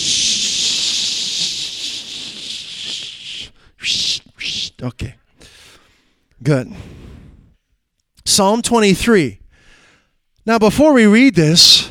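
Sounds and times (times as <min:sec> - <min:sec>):
spray can spraying: 0:00.0 - 0:04.2
speech: 0:04.8 - 0:05.2, 0:06.4 - 0:07.0, 0:08.4 - 0:09.4, 0:10.4 - 0:11.8.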